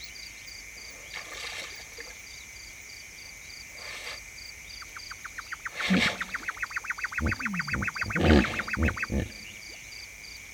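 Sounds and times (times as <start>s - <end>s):
high pulsed animal calls: 4.8s - 9.8s
hippopotamus grunts and honking: 7.2s - 9.7s.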